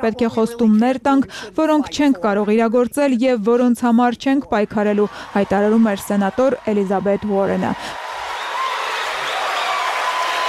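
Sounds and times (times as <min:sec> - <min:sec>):
speech: 0:00.0 - 0:08.0
audience applauding at a Senator Elizabeth Warren speech: 0:05.1 - 0:10.4.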